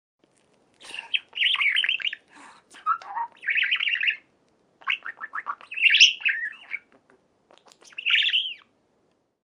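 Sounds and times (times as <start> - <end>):
budgerigar song: 1.2 - 2.2, 2.8 - 6.9, 7.6 - 8.7.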